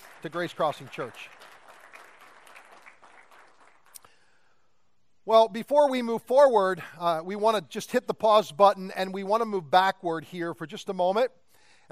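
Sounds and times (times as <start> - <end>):
audience applause at Grace Crossing Church: 0.0 - 4.0
speech: 0.2 - 1.5, 5.3 - 11.9.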